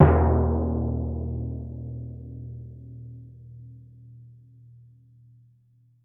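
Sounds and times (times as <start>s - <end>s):
timpani note mezzo forte on E1: 0.0s - 2.7s.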